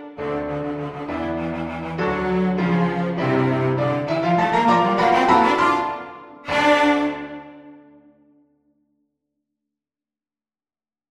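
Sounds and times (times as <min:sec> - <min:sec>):
cello playing energetically: 0:00.0 - 0:07.8.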